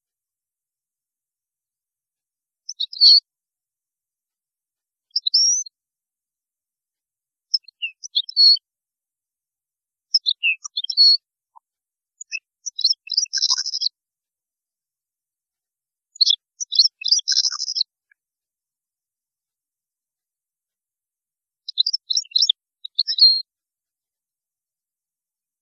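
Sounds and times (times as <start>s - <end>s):
European goldfinch singing: 2.7s - 3.2s, 5.1s - 5.7s, 7.5s - 8.6s, 10.2s - 11.2s, 12.2s - 13.9s, 16.2s - 17.9s, 21.7s - 23.4s.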